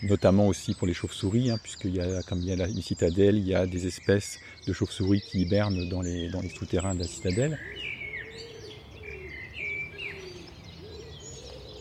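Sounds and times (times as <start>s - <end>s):
speech: 0.0s - 7.9s
common wood pigeon cooing: 4.4s - 11.8s.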